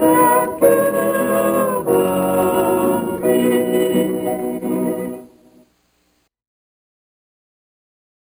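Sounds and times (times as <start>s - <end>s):
mixed vocal quartet: 0.0s - 5.6s.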